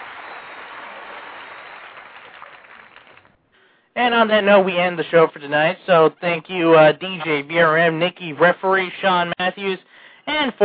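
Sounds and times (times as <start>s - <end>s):
audience applause: 0.0s - 3.4s
speech: 4.0s - 10.6s.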